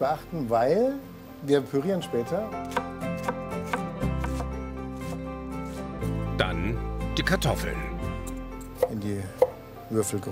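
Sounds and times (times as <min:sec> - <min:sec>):
speech: 0:00.0 - 0:02.8, 0:06.4 - 0:07.9, 0:08.8 - 0:10.2
chopping onions with a knife: 0:02.6 - 0:05.8.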